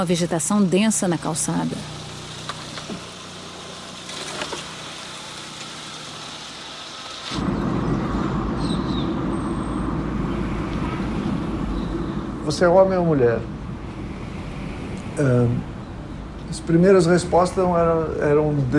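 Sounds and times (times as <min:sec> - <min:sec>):
speech: 0:00.0 - 0:02.0, 0:12.5 - 0:13.6, 0:15.2 - 0:15.7, 0:16.5 - 0:18.7
car pulling out of a parking space: 0:01.6 - 0:12.2.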